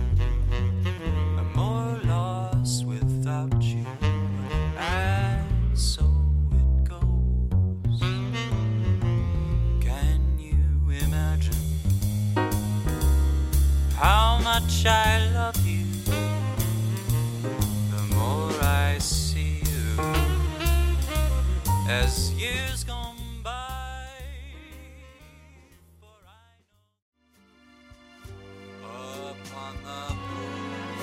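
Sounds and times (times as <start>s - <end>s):
backing track music: 0.0s - 5.8s, 7.5s - 9.9s, 11.0s - 25.9s, 27.2s - 31.0s
jazz singer singing: 0.0s - 7.4s, 8.0s - 11.8s, 12.9s - 26.5s, 28.8s - 31.0s.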